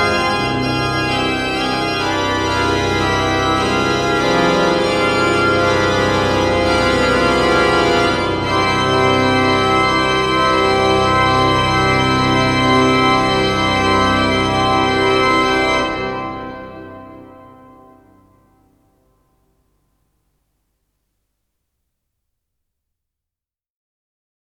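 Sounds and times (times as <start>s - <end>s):
fugue in C minor on great organ: 0.0s - 19.1s.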